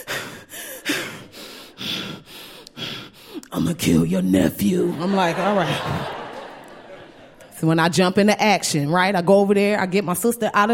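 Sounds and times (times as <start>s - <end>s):
voice imitating heavy exasperated breathing: 0.0s - 3.4s
speech: 3.5s - 6.2s, 7.6s - 10.7s
laughter: 4.8s - 7.8s.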